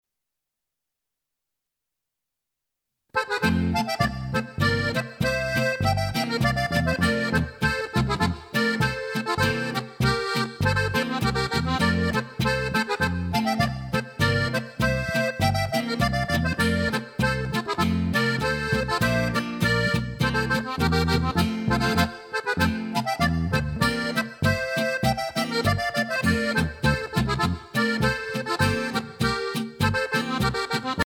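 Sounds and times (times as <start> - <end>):
accordion playing a Boarischer folk dance: 3.2 - 31.0.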